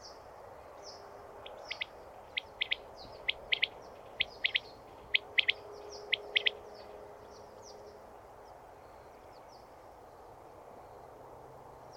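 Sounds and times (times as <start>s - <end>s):
faint high chirps of other birds: 1.5s - 7.8s
common quail giving triple-note call: 1.6s - 6.6s.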